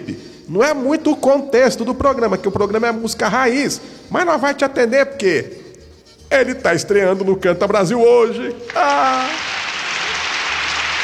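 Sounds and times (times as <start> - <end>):
speech: 0.5 - 5.6, 6.3 - 9.5
audience applause at a music programme welcoming a young guest: 8.6 - 11.0.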